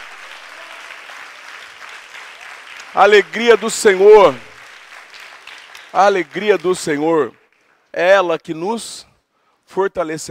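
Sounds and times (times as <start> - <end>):
audience applauding: 0.0 - 7.8
speech: 3.0 - 4.5, 5.9 - 9.1, 9.7 - 10.3.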